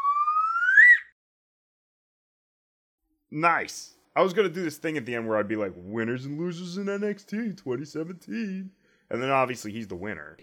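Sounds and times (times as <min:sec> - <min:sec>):
slide whistle: 0:00.0 - 0:01.2
speech: 0:03.3 - 0:10.4.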